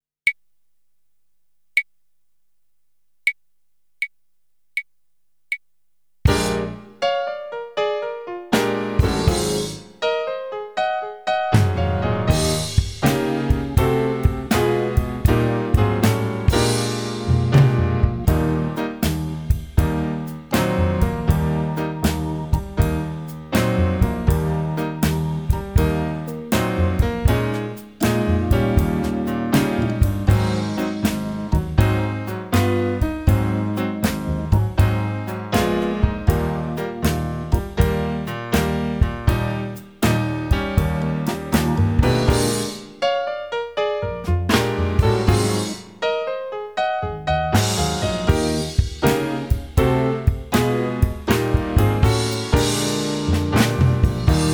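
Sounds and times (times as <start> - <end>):
blues music: 6.3 - 54.5.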